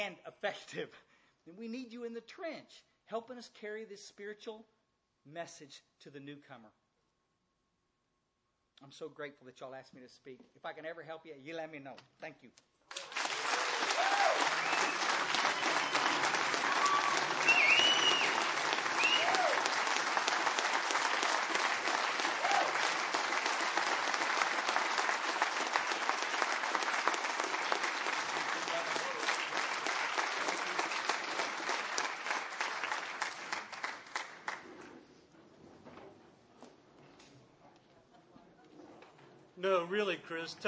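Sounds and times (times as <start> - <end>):
speech: 0.0 - 6.8, 8.8 - 12.7, 39.9 - 40.6
crowd applause: 12.9 - 34.7.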